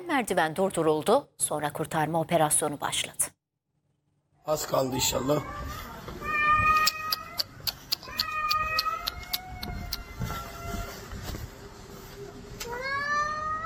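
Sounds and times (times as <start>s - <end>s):
speech: 0.1s - 3.4s, 4.5s - 5.8s
cat yowling in pain: 4.7s - 10.9s, 12.7s - 13.6s.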